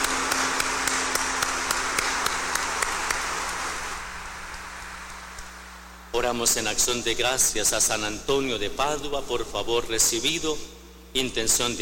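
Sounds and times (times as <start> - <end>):
crowd applause: 0.0 - 5.6
speech: 6.2 - 11.7.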